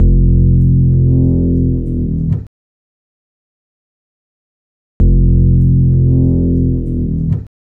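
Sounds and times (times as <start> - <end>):
acid bass lounge music at 96 BPM: 0.0 - 2.5, 5.0 - 7.5.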